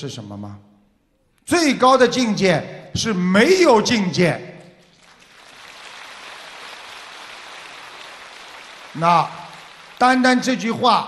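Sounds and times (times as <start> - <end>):
speech: 0.0 - 0.7, 1.5 - 4.5, 9.0 - 9.4, 10.0 - 11.0
audience applause: 4.8 - 10.7.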